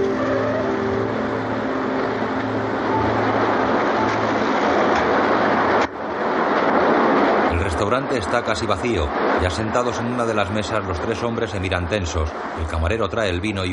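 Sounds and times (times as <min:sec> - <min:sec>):
car engine hum: 0:00.0 - 0:07.4
road rumble: 0:00.0 - 0:13.7
speech: 0:08.0 - 0:13.7.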